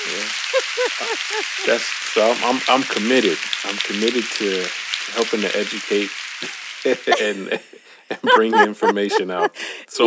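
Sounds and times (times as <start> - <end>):
laughter: 0.0 - 3.3, 6.9 - 9.7
applause sound effect: 0.0 - 7.5
speech: 0.1 - 10.0.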